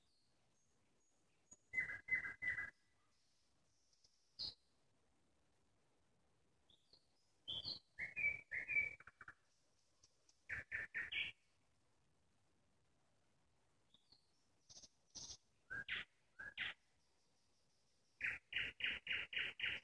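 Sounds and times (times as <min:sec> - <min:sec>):
nightingale singing: 0:00.0 - 0:04.7, 0:06.7 - 0:09.5, 0:10.4 - 0:11.5, 0:13.9 - 0:19.8.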